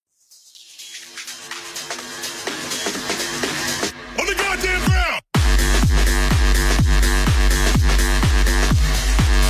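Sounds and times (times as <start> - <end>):
assault music: 1.8 - 9.4.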